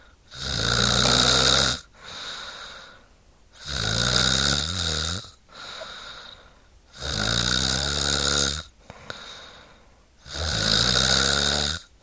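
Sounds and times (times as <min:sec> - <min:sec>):
woman snoring: 0:00.3 - 0:02.5, 0:03.6 - 0:06.4, 0:07.0 - 0:08.7, 0:10.2 - 0:11.9.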